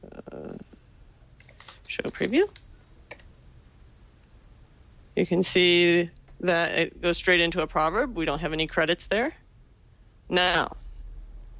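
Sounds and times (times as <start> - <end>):
typing on a computer keyboard while coding: 1.4 - 3.3
speech: 2.0 - 2.6, 5.2 - 9.4, 10.3 - 10.8.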